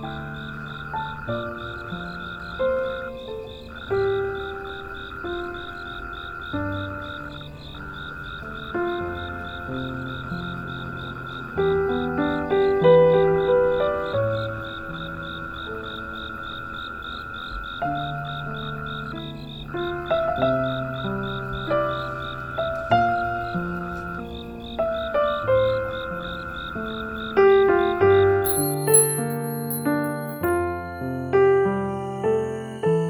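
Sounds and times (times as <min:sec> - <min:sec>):
soft piano melody: 0:00.0 - 0:33.0
steady high insect trill: 0:00.0 - 0:33.0
bright chimes: 0:28.4 - 0:32.3.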